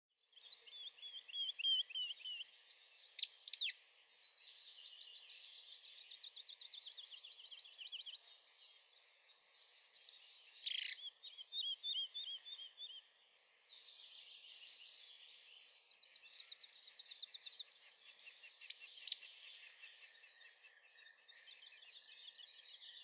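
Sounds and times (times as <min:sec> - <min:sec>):
short-toed treecreeper singing: 0:00.4 - 0:03.7, 0:06.5 - 0:13.1, 0:16.2 - 0:19.6.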